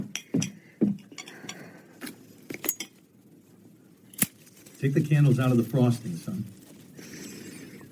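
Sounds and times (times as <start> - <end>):
plates and forks clinking while being fetched for cutting a cake: 0.2 - 1.7, 2.5 - 3.0
speech: 4.8 - 6.6.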